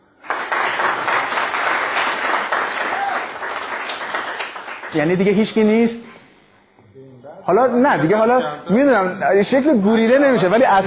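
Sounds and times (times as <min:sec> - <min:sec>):
audience applause: 0:00.2 - 0:05.0
speech: 0:04.9 - 0:06.1, 0:07.4 - 0:10.8.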